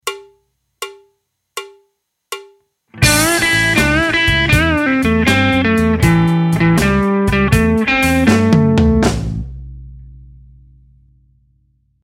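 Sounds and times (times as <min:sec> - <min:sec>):
blues music: 0:02.9 - 0:09.7.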